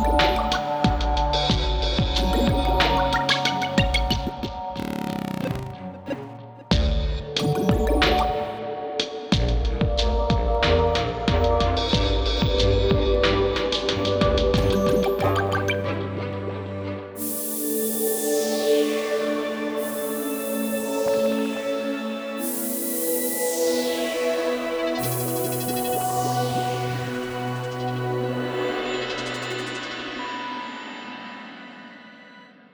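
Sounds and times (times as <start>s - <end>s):
music: 0.0s - 32.7s.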